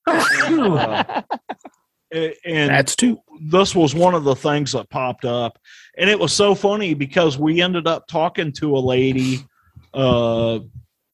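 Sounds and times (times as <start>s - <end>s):
person sneezing: 0.1s - 0.9s, 9.2s - 9.4s
laughter: 0.1s - 1.7s
speech: 0.5s - 1.5s, 2.1s - 10.8s.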